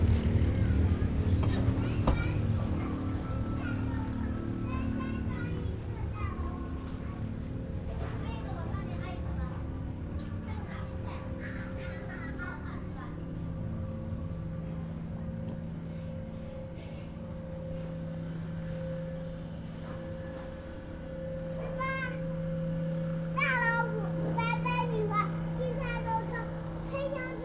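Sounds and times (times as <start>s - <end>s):
motor train: 0.0s - 27.4s
child: 0.2s - 13.6s, 21.2s - 27.4s.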